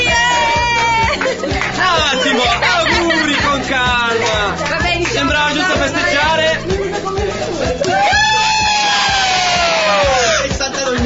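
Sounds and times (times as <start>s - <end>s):
crowd celebrating with distorted shouts and whoops: 0.0s - 3.0s, 7.8s - 10.5s
laughter: 0.0s - 11.0s.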